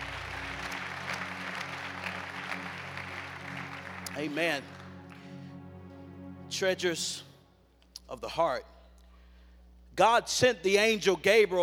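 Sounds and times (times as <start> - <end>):
audience clapping: 0.0 - 5.5
speech: 4.2 - 4.8, 6.5 - 7.3, 8.1 - 8.7, 10.0 - 11.6.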